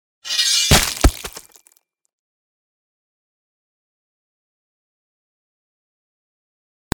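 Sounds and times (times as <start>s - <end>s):
guillotine chopping off a head in an execution: 0.3s - 1.6s.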